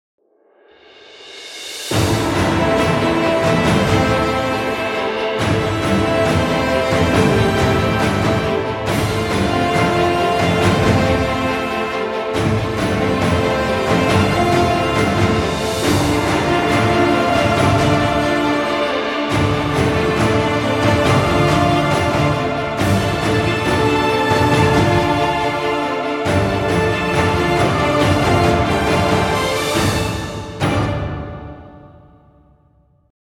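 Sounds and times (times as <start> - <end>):
epic music: 1.5 - 32.8.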